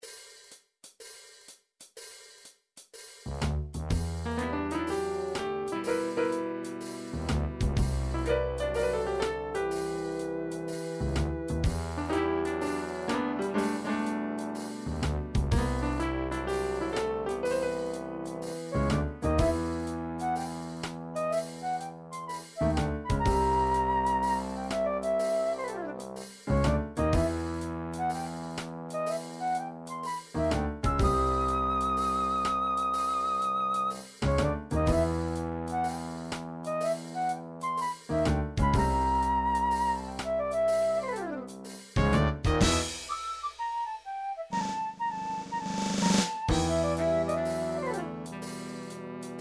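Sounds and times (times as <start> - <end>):
jazz music: 3.3 - 49.3.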